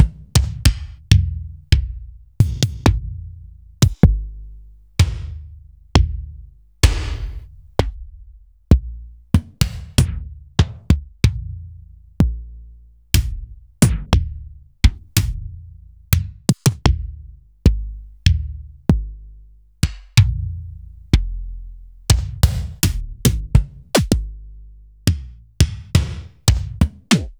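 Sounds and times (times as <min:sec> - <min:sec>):
Akai MPC500 kick drum: 0:00.0 - 0:27.3.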